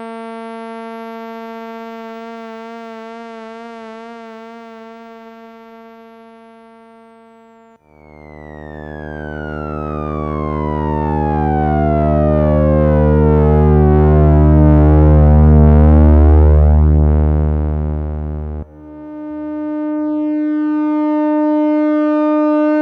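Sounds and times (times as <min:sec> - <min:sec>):
synthesizer solo with LFO sync: 0:07.8 - 0:22.8.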